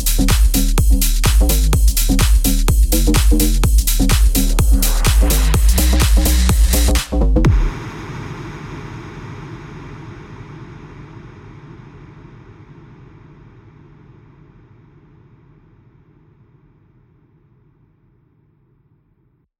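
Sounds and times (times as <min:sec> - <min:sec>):
euphoric house music with slap bass: 0:00.0 - 0:12.9.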